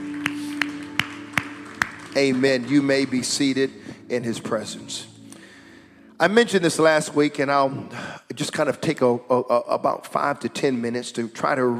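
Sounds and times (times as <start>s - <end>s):
hands clapping: 0.0s - 3.7s
speech: 2.2s - 5.1s, 6.2s - 11.7s.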